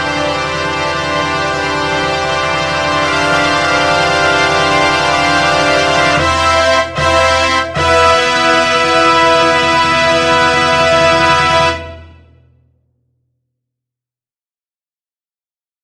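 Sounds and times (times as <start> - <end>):
fanfare: 0.0 - 12.3.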